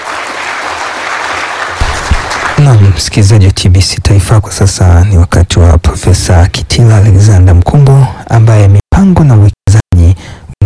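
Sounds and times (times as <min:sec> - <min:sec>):
audience applause for a professor: 0:00.0 - 0:02.9
speech: 0:02.7 - 0:09.6.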